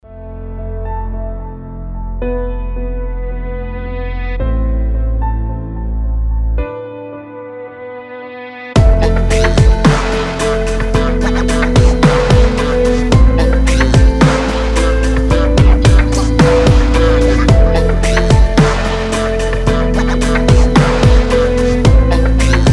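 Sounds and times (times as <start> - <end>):
instrumental music: 0.1 - 22.7.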